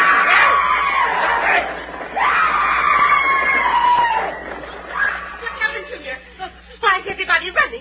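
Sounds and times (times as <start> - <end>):
people screaming and yelling: 0.0 - 5.8
crowd running and shouting: 0.0 - 5.9.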